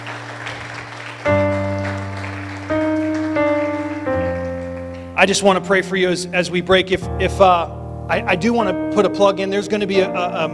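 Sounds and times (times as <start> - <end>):
audience clapping: 0.0 - 5.4
sustained organ or keyboard chords: 0.0 - 10.5
speech: 5.2 - 10.5.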